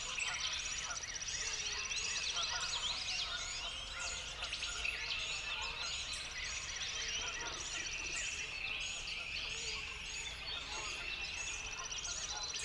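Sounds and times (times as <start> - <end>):
birds at dawn: 0.0 - 12.6.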